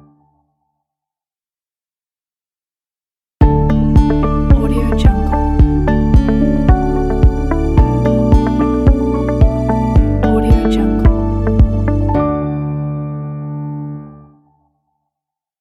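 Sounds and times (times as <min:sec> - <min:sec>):
ambient music: 0:03.4 - 0:14.4.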